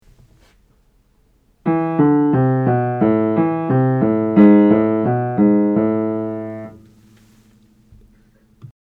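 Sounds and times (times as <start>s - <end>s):
minor scales played: 1.6s - 7.4s.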